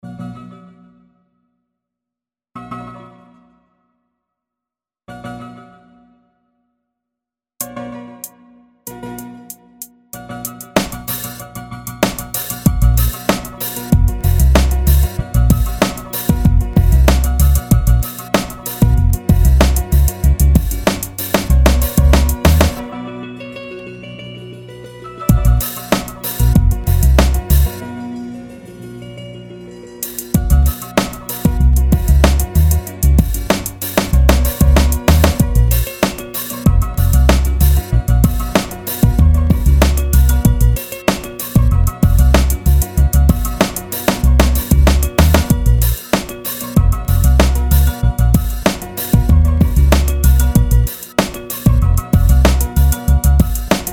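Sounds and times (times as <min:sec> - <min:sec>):
instrumental beat: 0:07.6 - 0:22.9, 0:24.7 - 0:28.0, 0:30.0 - 0:53.9.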